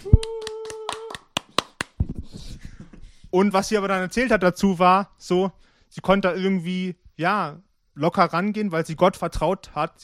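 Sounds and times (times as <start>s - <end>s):
group clapping hands: 0.0s - 2.0s
speech: 3.3s - 10.0s.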